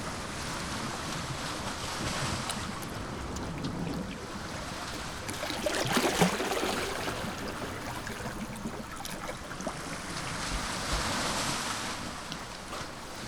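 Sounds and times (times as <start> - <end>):
soft waves at a coastal cliff: 0.0 - 13.2.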